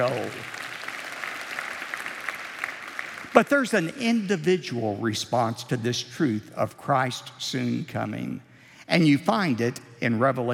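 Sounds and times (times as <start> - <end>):
speech: 0.0 - 0.6, 3.4 - 10.5
audience applause: 0.0 - 4.0.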